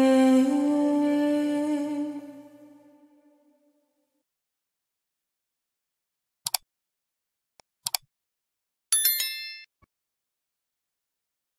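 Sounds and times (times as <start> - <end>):
Catholic Eucharistic hymn with lyrics: 0.0 - 3.5.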